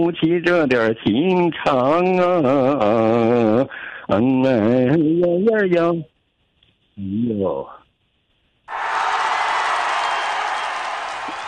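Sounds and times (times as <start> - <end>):
speech: 0.0 - 6.1, 7.0 - 7.8
audience applause of encouragement after a traditional opera song: 8.7 - 11.4.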